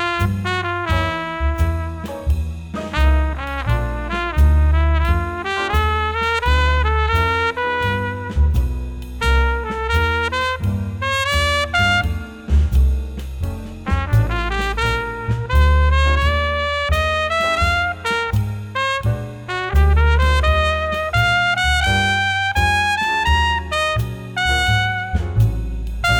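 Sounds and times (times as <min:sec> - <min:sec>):
swing trumpet playing: 0:00.0 - 0:12.8, 0:13.7 - 0:26.1.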